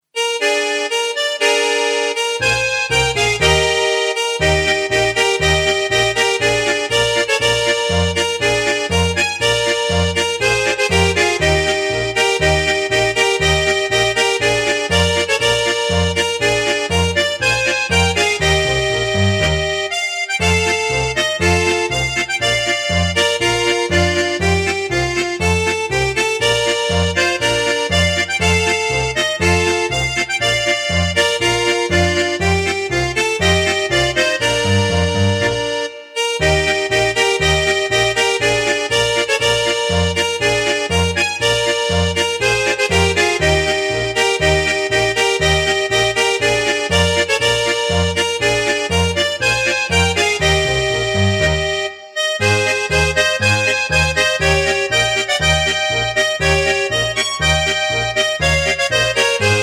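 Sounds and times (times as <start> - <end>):
polka played on accordion: 0.0 - 59.6.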